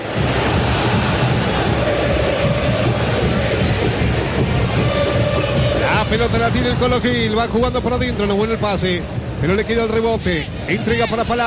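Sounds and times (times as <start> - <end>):
football fans chanting in a stadium: 0.0 - 6.5
speech: 6.1 - 11.4.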